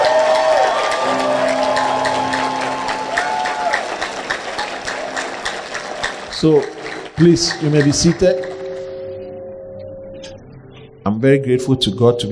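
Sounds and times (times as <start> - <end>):
audience applause: 0.0 - 8.7
speech: 6.4 - 8.5, 11.2 - 12.3.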